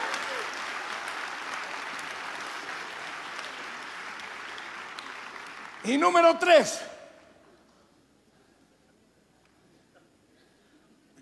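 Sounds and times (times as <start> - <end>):
audience applause: 0.0 - 6.8
speech: 5.8 - 6.9.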